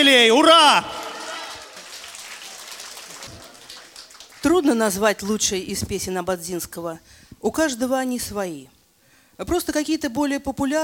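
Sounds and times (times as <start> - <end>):
speech: 0.0 - 1.0, 4.4 - 8.8, 9.4 - 10.8
concert audience applause: 0.8 - 4.6.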